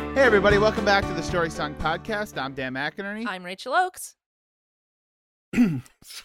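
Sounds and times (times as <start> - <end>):
speech: 0.2 - 4.2, 5.5 - 6.2
person coughing: 5.5 - 6.2.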